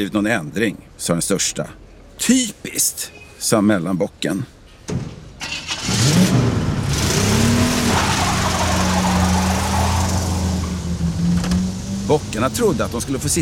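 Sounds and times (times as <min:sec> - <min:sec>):
speech: 0:00.0 - 0:05.1, 0:12.1 - 0:13.4
car engine starting and revving: 0:05.4 - 0:13.4.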